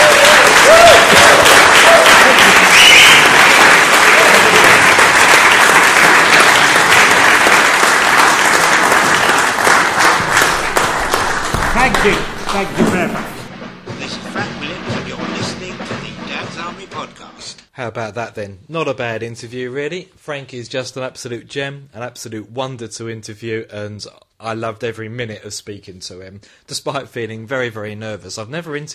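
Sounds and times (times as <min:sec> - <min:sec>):
audience applause: 0:00.0 - 0:17.1
speech: 0:17.8 - 0:28.9.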